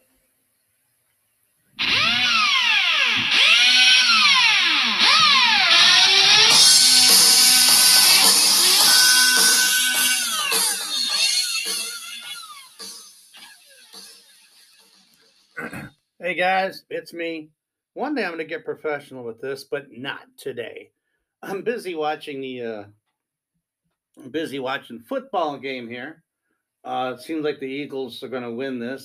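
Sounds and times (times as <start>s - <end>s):
voice imitating a blender motor: 1.8s - 14.7s
speech: 16.4s - 23.0s, 24.2s - 26.2s, 26.8s - 29.0s.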